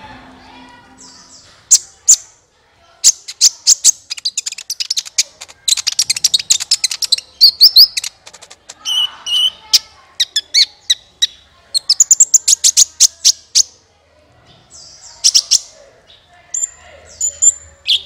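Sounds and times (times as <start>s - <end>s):
sunbird song: 3.0s - 13.8s, 14.4s - 18.0s.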